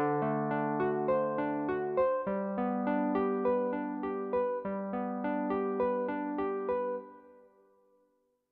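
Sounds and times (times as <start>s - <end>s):
vintage electric piano: 0.0s - 7.5s.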